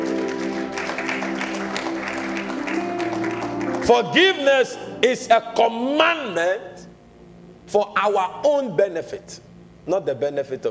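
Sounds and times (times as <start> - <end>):
crowd clapping: 0.0 - 4.9
keyboard or organ tones: 0.0 - 10.6
speech: 3.9 - 6.8, 7.7 - 10.6.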